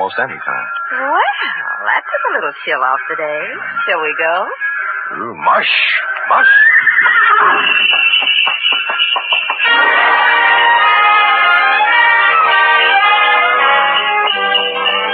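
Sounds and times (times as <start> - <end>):
speech: 0.0 - 10.7
horse whinnying: 6.2 - 7.9
horse hoof beats on snow: 6.4 - 10.3
sleigh bells jangling: 7.2 - 11.0, 11.8 - 15.1.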